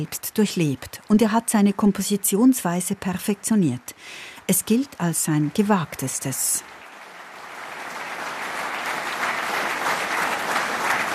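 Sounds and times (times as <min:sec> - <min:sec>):
speech: 0:00.0 - 0:06.8
concert audience applause for a choir and early music ensemble: 0:06.6 - 0:11.1.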